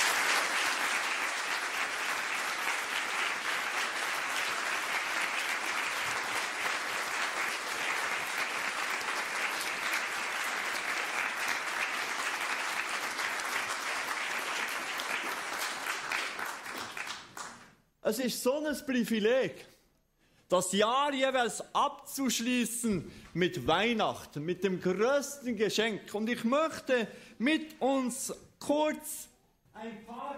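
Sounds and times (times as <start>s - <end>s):
audience applauding: 0.0s - 17.8s
speech: 18.1s - 19.7s, 20.5s - 30.3s.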